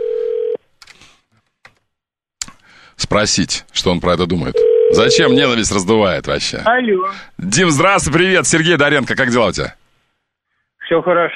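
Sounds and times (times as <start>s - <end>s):
telephone dial tone on an old long-unused phone while a call is placed: 0.0s - 0.6s, 4.6s - 5.2s
speech: 3.0s - 9.8s, 10.9s - 11.3s.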